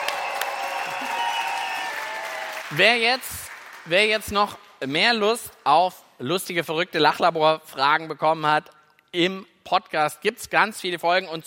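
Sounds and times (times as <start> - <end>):
audience applause: 0.0 - 4.0
speech: 2.7 - 11.4.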